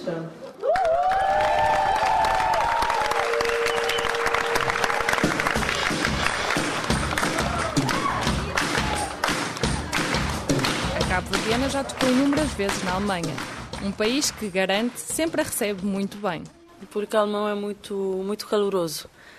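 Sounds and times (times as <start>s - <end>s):
speech: 0.0s - 0.4s, 11.5s - 19.3s
concert audience applause and cheering: 0.5s - 15.6s.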